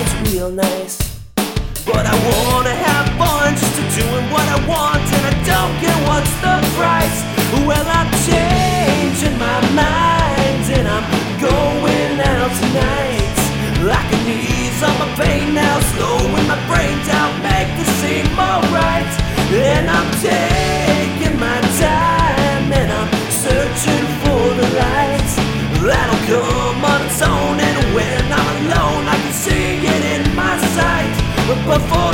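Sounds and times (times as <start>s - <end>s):
rock vocals in D: 0.0s - 32.1s.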